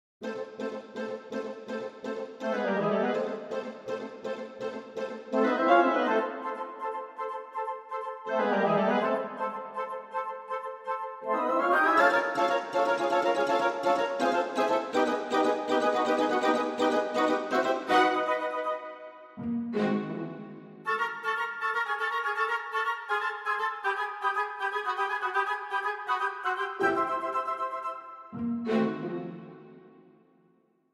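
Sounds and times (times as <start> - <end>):
wooden string instruments: 0.2 - 30.2.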